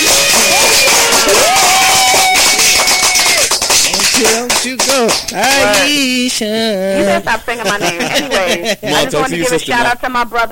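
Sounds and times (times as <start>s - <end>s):
audience clapping: 0.0s - 6.3s
speech: 5.3s - 10.5s
laughter: 6.8s - 9.6s.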